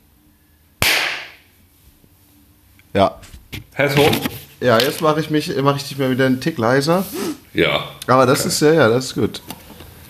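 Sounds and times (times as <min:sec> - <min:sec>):
single loud sharp hand clap: 0:00.8 - 0:01.4
speech: 0:03.0 - 0:09.6.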